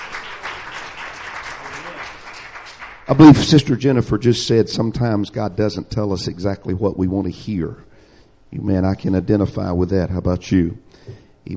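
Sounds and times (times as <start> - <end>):
audience hand clapping: 0.0 - 3.2
speech: 3.1 - 7.9, 8.5 - 11.5.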